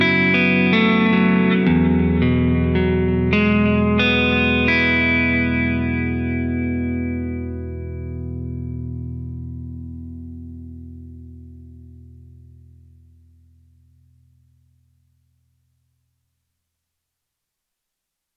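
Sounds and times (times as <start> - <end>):
Telecaster arpeggiated chord with blendable delay: 0.0 - 12.6.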